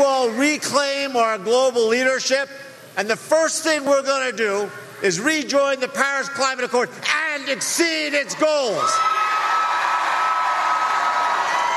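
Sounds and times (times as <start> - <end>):
speech: 0.2 - 9.2
crowd cheering: 8.6 - 11.7.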